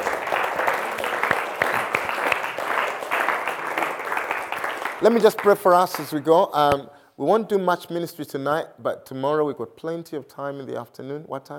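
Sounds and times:
audience clapping: 0:00.0 - 0:06.5
speech: 0:05.0 - 0:11.5.

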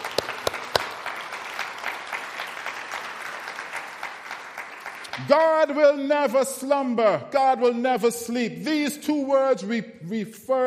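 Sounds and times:
audience clapping: 0:00.0 - 0:06.1
speech: 0:05.2 - 0:10.6.

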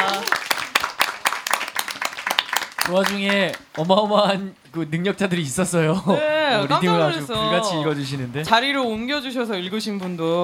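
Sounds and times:
audience applause: 0:00.0 - 0:04.3
speech: 0:02.9 - 0:10.4.

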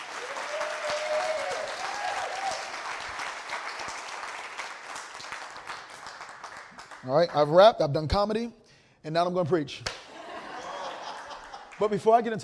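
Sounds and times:
audience applause: 0:00.0 - 0:07.0
speech: 0:07.0 - 0:10.0, 0:11.8 - 0:12.4
laughter: 0:10.1 - 0:11.9.

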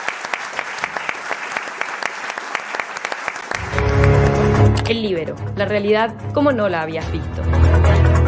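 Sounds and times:
closing applause: 0:00.0 - 0:04.9
speech: 0:04.9 - 0:08.1.

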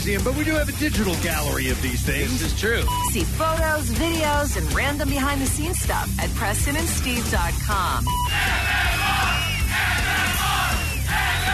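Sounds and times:
speech: 0:00.0 - 0:09.3
shrill whistles from the crowd: 0:08.1 - 0:11.5
large crowd cheering and yelling: 0:08.2 - 0:11.5.

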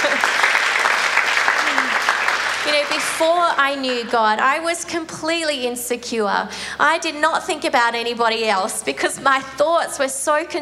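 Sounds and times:
audience clapping: 0:00.0 - 0:04.2
speech: 0:02.9 - 0:10.6.

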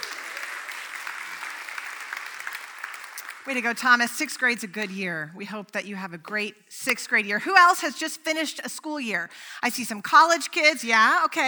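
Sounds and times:
audience applause: 0:00.0 - 0:03.5
speech: 0:03.4 - 0:11.4.

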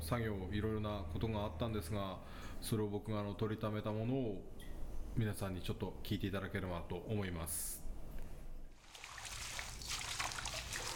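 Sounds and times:
speech: 0:00.1 - 0:07.8
wild mountain grapes being washed in water: 0:08.8 - 0:10.9.

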